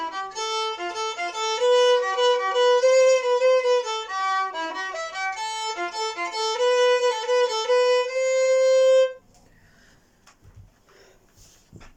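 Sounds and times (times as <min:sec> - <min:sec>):
Breton waltz: 0:00.0 - 0:09.2.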